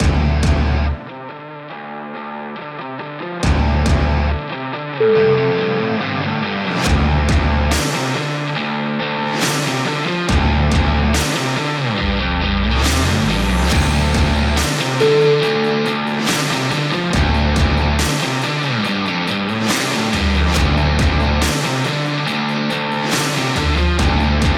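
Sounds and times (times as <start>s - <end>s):
promo rock music: 0.0s - 24.5s.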